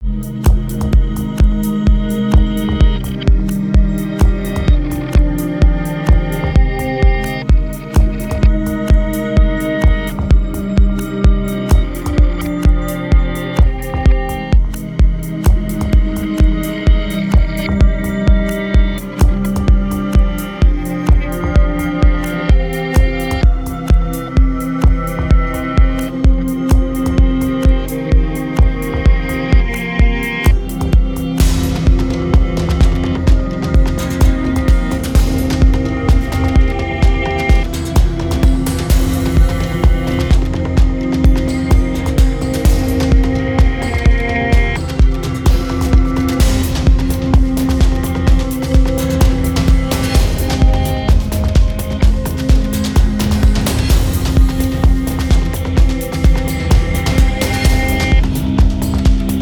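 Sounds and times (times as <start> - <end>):
somewhat sad backmasked ghostly dance music: 0.0 - 59.4.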